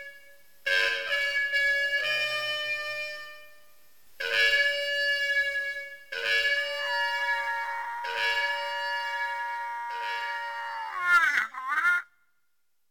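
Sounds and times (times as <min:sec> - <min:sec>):
trumpet: 0:00.0 - 0:03.6, 0:04.2 - 0:10.9
siren alone: 0:06.4 - 0:11.3.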